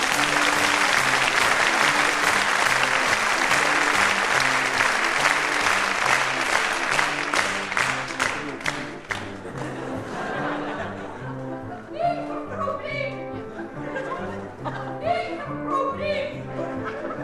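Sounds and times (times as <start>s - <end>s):
audience applause: 0.0s - 10.4s
laughter: 9.2s - 15.7s, 16.6s - 17.2s.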